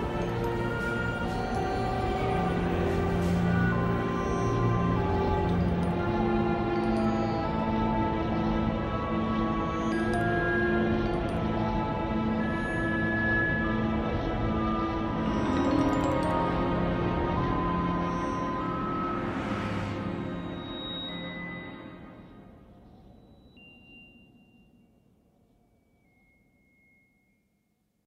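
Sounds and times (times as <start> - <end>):
ensemble background music: 0.0 - 25.0.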